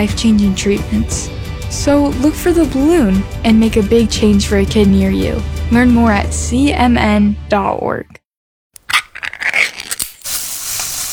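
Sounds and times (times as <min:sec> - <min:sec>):
speech: 0:00.0 - 0:08.2
Spam sizzling in a pan: 0:09.9 - 0:11.1.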